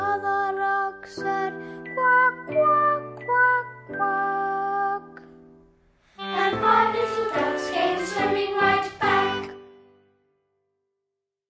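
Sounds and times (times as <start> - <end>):
children's song performance track: 0.0 - 5.4, 6.1 - 9.9.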